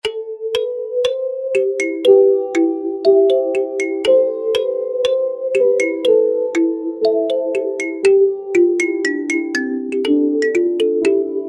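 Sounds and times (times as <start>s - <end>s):
kalimba: 0.0s - 11.4s.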